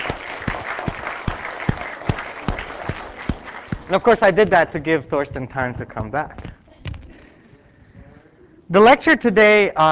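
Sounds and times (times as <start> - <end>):
audience applause: 0.0 - 4.4
speech: 3.9 - 6.4, 8.7 - 9.9.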